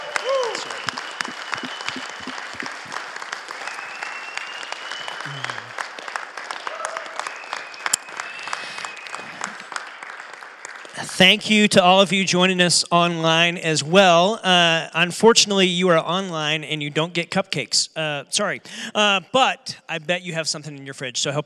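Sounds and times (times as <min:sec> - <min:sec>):
audience applause: 0:00.0 - 0:11.1
speech: 0:11.2 - 0:21.4.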